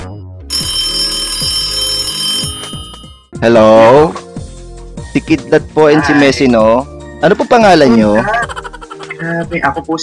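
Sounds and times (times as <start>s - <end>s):
electronic phone ringtone: 0.4s - 3.4s
speech: 3.4s - 4.2s, 5.2s - 8.4s, 9.2s - 10.0s.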